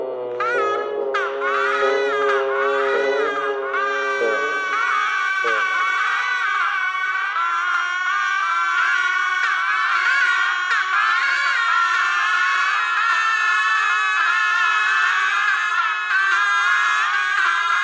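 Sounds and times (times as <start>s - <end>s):
bagpipe: 0.1s - 17.8s
geese: 0.4s - 17.8s.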